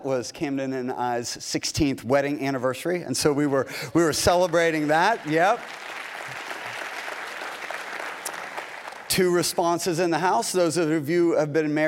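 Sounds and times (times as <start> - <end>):
speech: 0.0 - 5.9, 9.2 - 11.8
audience cheering and applauding: 4.2 - 9.8.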